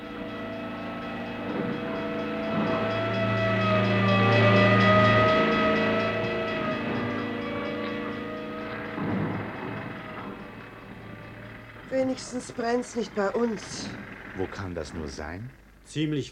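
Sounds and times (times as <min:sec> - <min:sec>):
fire engine sirens wailing: 0:00.0 - 0:15.6
speech: 0:12.0 - 0:16.3.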